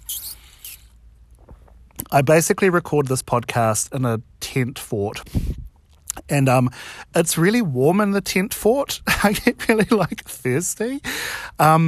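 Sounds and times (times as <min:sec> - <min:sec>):
sipping from a water bottle: 0:00.0 - 0:01.0
speech: 0:02.1 - 0:05.5, 0:06.3 - 0:11.8.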